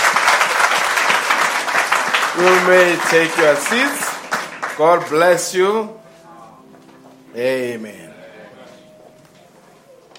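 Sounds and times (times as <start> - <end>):
audience applauding: 0.0 - 5.5
speech: 2.4 - 4.1, 4.8 - 6.0, 7.4 - 8.1.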